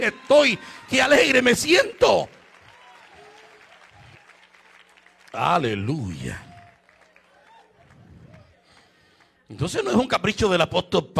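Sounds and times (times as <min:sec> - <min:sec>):
speech: 0:00.0 - 0:02.4, 0:05.3 - 0:06.5, 0:09.5 - 0:11.1
faint voices and cheers: 0:00.0 - 0:04.6, 0:05.3 - 0:08.8
loud applause from audience: 0:00.0 - 0:09.6.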